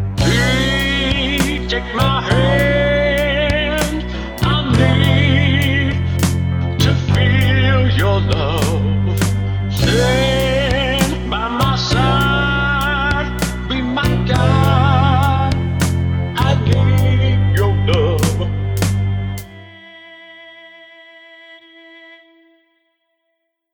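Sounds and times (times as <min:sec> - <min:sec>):
yacht rock vocals: 0:00.2 - 0:19.4.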